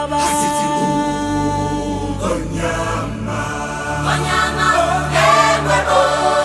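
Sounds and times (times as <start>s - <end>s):
youth choir singing: 0.1s - 6.4s.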